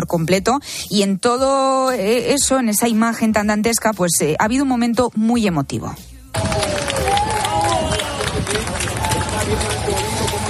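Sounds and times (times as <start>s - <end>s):
speech: 0.0s - 6.6s
cheering and raised voices: 6.3s - 10.4s
neighbours applauding firefighters' rescue: 6.4s - 10.4s.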